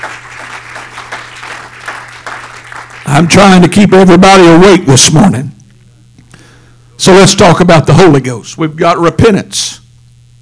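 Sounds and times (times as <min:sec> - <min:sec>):
group clapping hands: 0:00.0 - 0:03.8
low constant hum: 0:00.0 - 0:10.4
speech: 0:03.1 - 0:05.6, 0:07.0 - 0:09.8.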